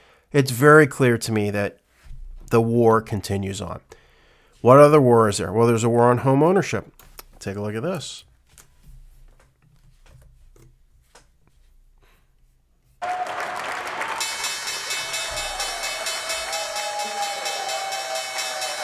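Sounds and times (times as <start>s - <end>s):
speech: 0.3s - 1.8s, 2.5s - 4.0s, 4.6s - 8.3s
crowd applauding and cheering: 13.0s - 18.8s
scattered claps and murmurs: 13.0s - 18.8s.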